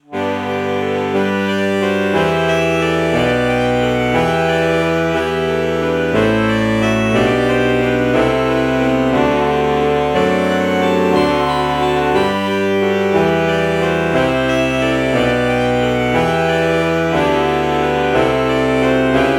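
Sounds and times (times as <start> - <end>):
morphed alto saxophone: 0.0 - 19.3.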